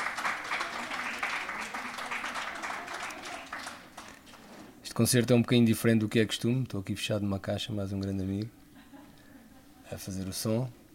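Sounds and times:
audience clapping: 0.0 - 4.7
speech: 5.0 - 8.6, 9.9 - 10.8.

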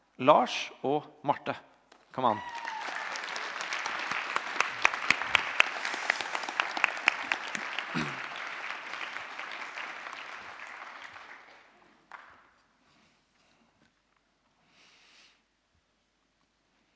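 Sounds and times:
speech: 0.2 - 2.7
audience applause and cheering: 2.3 - 12.5.

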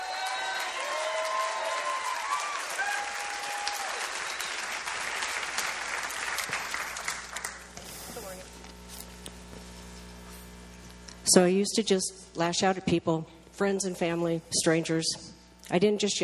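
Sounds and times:
cheers and whoops: 0.0 - 4.7
crowd applauding: 0.0 - 7.8
speech: 11.3 - 16.2.

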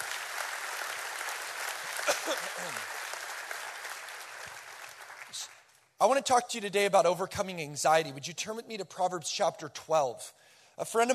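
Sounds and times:
crowd applauding: 0.0 - 5.7
speech: 2.1 - 3.0, 5.4 - 11.1.

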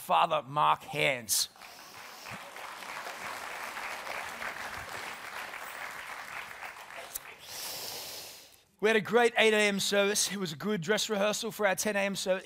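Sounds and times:
speech: 0.1 - 1.6, 8.8 - 12.4
audience applause: 1.6 - 7.6.

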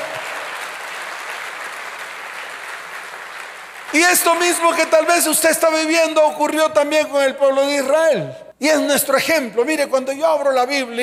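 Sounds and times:
crowd applause: 0.0 - 5.4
speech: 3.9 - 11.0.

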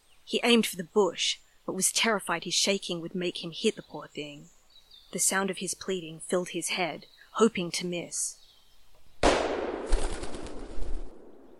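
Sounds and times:
speech: 0.3 - 8.4
single hunting gun shot in a quiet wood: 9.2 - 11.4.

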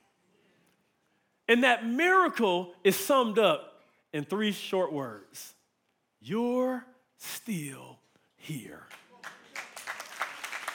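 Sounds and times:
speech: 1.5 - 5.6, 6.2 - 9.4
audience clapping: 8.7 - 10.7.

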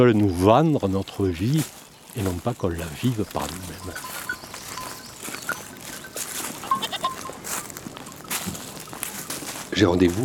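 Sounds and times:
speech: 0.0 - 4.2, 9.8 - 10.2
goats bleating: 3.0 - 7.8.

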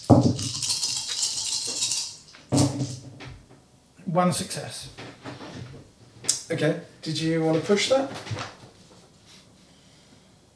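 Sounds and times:
dice being shaken in a cupped hand or cup and rolled: 0.1 - 3.0
speech: 4.2 - 5.0, 6.5 - 8.5.

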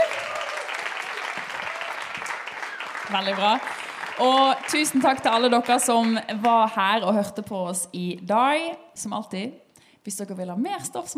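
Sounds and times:
audience applause: 0.0 - 6.2
speech: 3.1 - 11.1.

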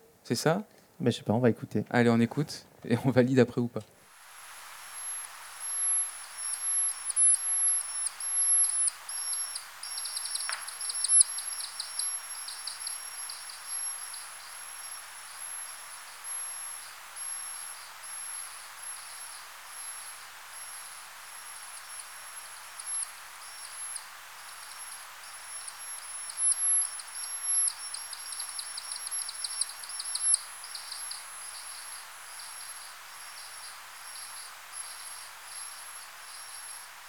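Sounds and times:
constant hiss: 0.0 - 37.0
speech: 0.3 - 4.0
time-expanded lesser horseshoe bat echolocation calls: 4.8 - 37.0.

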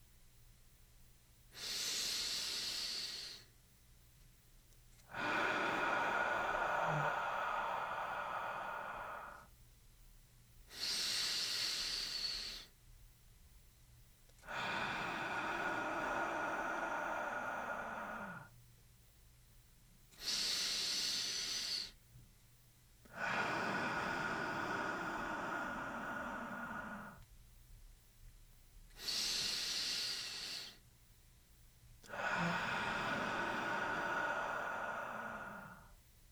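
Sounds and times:
slow deep breathing in a guided exercise: 1.5 - 3.5, 5.0 - 9.5, 10.7 - 12.8, 14.4 - 18.6, 20.2 - 22.0, 23.1 - 27.3, 28.9 - 30.8, 32.0 - 36.0.

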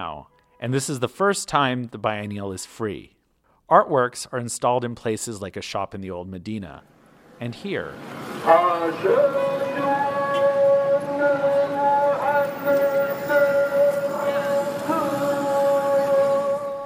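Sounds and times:
speech: 0.0 - 10.0
mosque call to prayer from the Koutoubia: 7.4 - 16.8.

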